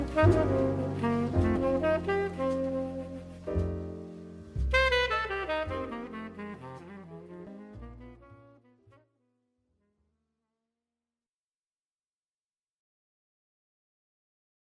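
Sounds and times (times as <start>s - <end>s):
jazz singer: 0.0s - 3.8s, 4.5s - 8.5s
jazz trio playing: 0.0s - 8.7s.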